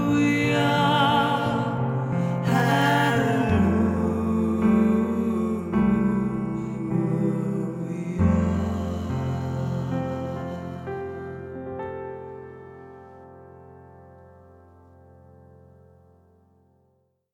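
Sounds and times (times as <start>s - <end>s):
choral hymn singing: 0.0s - 11.6s.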